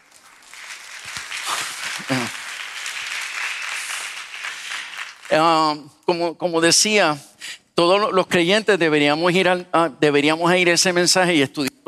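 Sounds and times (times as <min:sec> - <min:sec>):
audience applause: 0:00.0 - 0:05.6
laughter: 0:01.5 - 0:02.4
speech: 0:02.0 - 0:02.4, 0:05.3 - 0:11.8.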